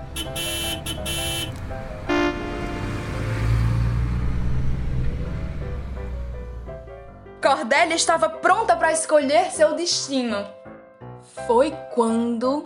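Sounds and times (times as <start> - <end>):
bus horn honking: 0.0 - 3.1
large bus engine rumbling: 0.0 - 7.5
speech: 7.5 - 10.6, 11.5 - 12.6.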